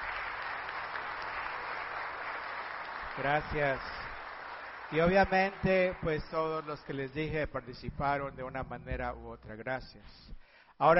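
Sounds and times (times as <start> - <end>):
applause: 0.0 - 8.3
speech: 3.2 - 4.0, 4.9 - 10.9.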